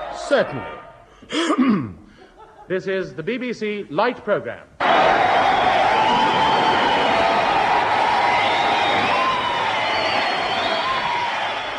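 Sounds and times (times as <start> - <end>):
speech: 0.3 - 2.0, 2.7 - 5.3
audience applause: 4.8 - 11.7.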